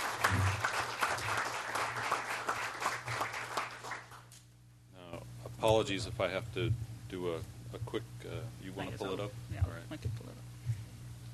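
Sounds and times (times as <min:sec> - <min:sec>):
audience applause: 0:00.0 - 0:04.3
speech: 0:05.6 - 0:10.5.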